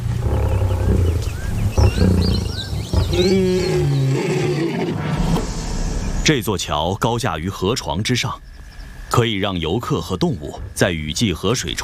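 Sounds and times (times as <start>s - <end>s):
lion roaring: 0.0s - 5.2s
speech: 3.2s - 4.0s, 6.3s - 8.6s, 9.2s - 11.8s.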